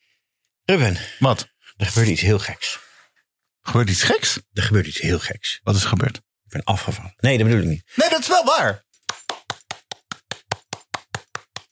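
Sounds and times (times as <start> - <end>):
speech: 0.7 - 2.8, 3.7 - 8.9
clapping with greasy hands: 8.9 - 11.7.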